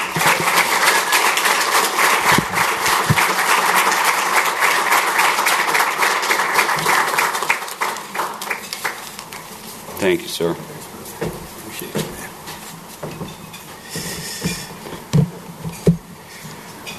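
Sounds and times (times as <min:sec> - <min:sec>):
audience applause greeting a guest speaker at a City Club event: 0:00.0 - 0:09.1
speech: 0:10.0 - 0:10.7.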